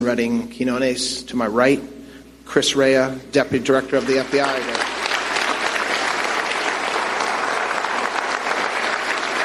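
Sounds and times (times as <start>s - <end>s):
speech: 0.1s - 4.9s
audience applause: 4.0s - 9.4s.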